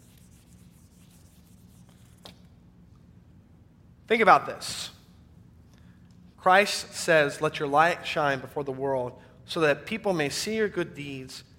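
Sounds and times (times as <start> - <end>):
eraser rubbing writing off a board during a church sermon: 0.0 - 2.2
speech: 4.1 - 5.0, 6.4 - 11.5.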